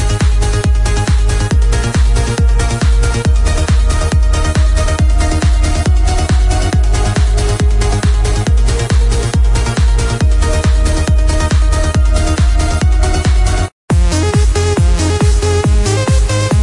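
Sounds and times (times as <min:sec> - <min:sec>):
melodic uplifting trance music: 0:00.0 - 0:16.6.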